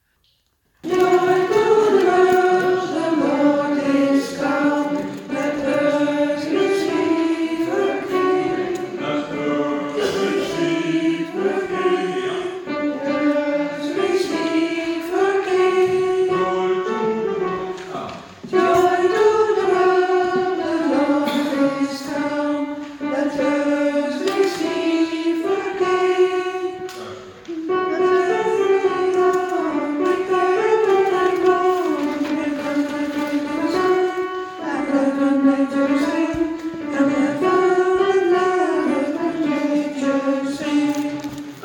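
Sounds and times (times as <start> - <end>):
alternate version of a Christmas carol: 0.8 - 41.6.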